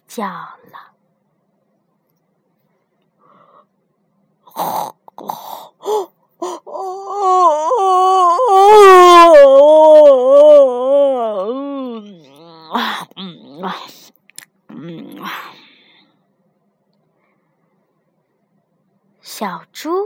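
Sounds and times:
speech: 0.2 - 1.0, 4.6 - 7.7
voice imitating a long drawn-out yawn: 4.5 - 13.7.

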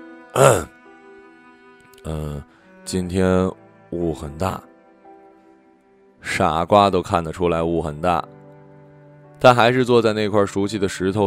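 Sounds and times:
speech: 0.4 - 0.7, 2.0 - 4.7, 6.2 - 8.4, 9.4 - 11.2
throaty cough: 0.4 - 0.7.

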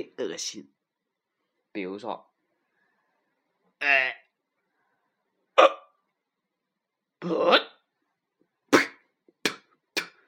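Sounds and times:
speech: 0.0 - 0.8, 1.8 - 2.3, 3.8 - 4.2, 7.2 - 7.7
hiccup: 5.6 - 6.0.

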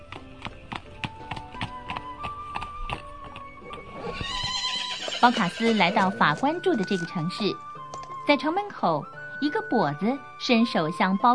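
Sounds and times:
horse hooves clip-clopping: 0.0 - 8.8
horse neighing: 3.8 - 6.4
speech: 5.2 - 7.7, 8.3 - 11.3.

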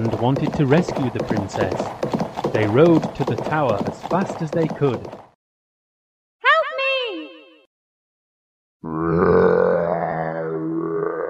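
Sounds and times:
speech: 0.0 - 5.2
ogre roaring in anger: 8.8 - 11.2.

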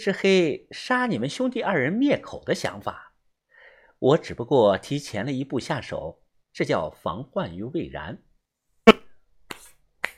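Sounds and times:
speech: 0.0 - 3.1, 4.0 - 9.0
hands clapping: 9.5 - 10.1.

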